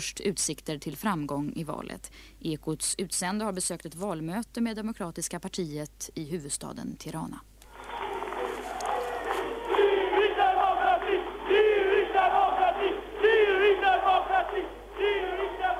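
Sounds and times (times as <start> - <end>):
speech: 0.0 - 7.5
crowd chanting a slogan at political rally: 7.7 - 15.7.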